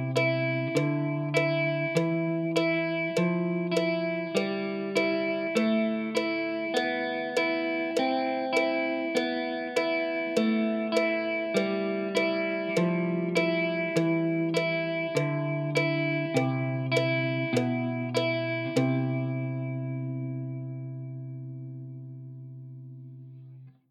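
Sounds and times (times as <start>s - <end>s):
guitar playing a C major skipping exercise: 0.0s - 23.8s.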